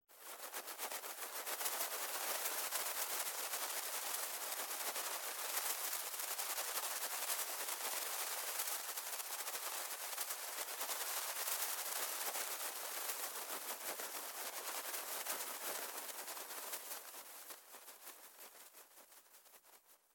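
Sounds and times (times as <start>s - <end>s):
butterflies fluttering in a cramped room: 0.1s - 19.8s.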